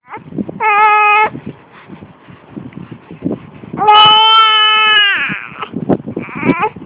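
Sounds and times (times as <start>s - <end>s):
hungry baby boy: 0.0s - 1.9s, 3.8s - 6.8s.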